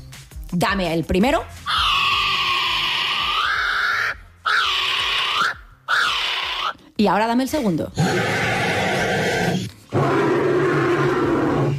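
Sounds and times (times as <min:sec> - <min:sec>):
speech: 0:00.5 - 0:01.8, 0:07.0 - 0:08.4
loud rough roar-like bird calls: 0:01.7 - 0:06.8, 0:08.0 - 0:11.7.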